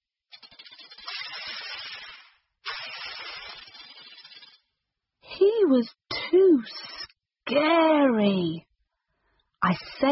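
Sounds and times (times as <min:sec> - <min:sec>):
snake hissing: 0:00.3 - 0:04.7
speech: 0:05.4 - 0:06.9, 0:07.5 - 0:08.7, 0:09.6 - 0:10.1.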